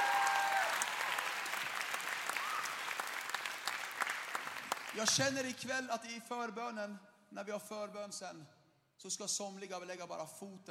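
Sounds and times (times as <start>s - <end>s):
audience applause: 0.0s - 5.4s
speech: 5.0s - 10.6s.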